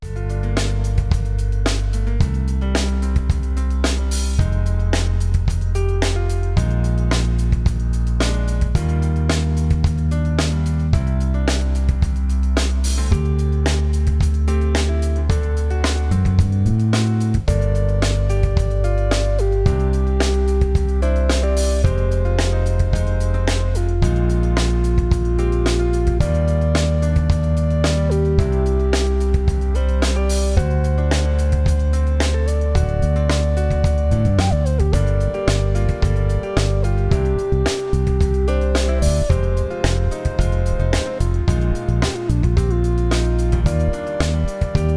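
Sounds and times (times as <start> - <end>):
electro music: 0.0 - 44.9.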